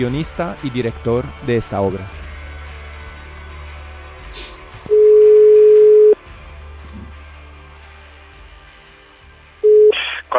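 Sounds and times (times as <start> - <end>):
speech: 0.0 - 2.2
telephone dialing and ringing tone: 4.9 - 6.2.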